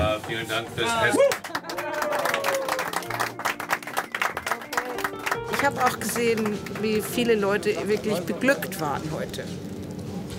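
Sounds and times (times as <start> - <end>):
speech: 0.3 - 1.6, 5.6 - 9.6
group applause: 1.1 - 7.2.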